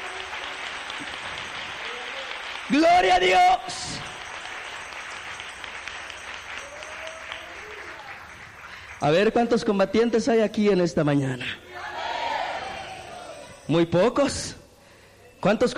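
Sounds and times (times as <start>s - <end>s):
audience applause: 0.0s - 9.2s
speech: 1.0s - 1.4s, 2.7s - 4.1s, 9.0s - 11.8s, 13.7s - 14.6s, 15.4s - 15.7s.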